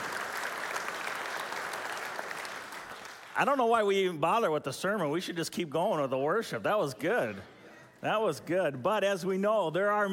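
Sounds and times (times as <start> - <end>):
audience applause: 0.0 - 3.4
speech: 3.4 - 10.1.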